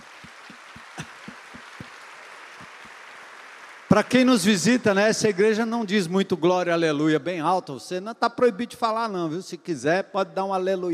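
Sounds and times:
crowd clapping: 0:00.0 - 0:06.1
speech: 0:03.9 - 0:10.9.

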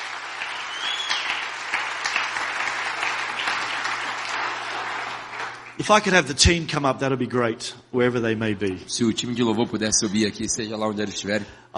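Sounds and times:
audience applause: 0:00.0 - 0:06.3
speech: 0:05.8 - 0:11.7.

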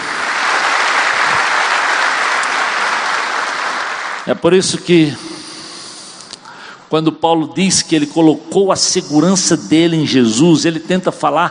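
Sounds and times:
audience applauding: 0:00.0 - 0:04.3
speech: 0:04.3 - 0:05.3, 0:06.9 - 0:11.4.

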